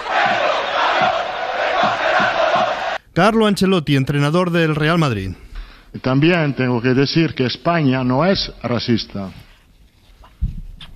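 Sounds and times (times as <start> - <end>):
football stadium crowd shouting: 0.0 - 3.0
rhythmic low pulses: 0.0 - 3.0
speech: 3.2 - 9.4.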